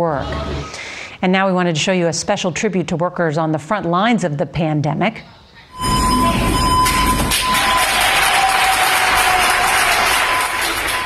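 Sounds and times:
speech: 0.0 - 6.6
hospital doctors and nurses applauding a cleaning crew in Barcelona: 6.2 - 11.0.

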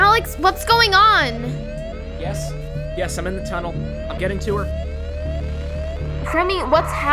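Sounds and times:
speech: 0.2 - 4.9, 6.3 - 7.1
sensor alarm going off: 6.2 - 7.1.

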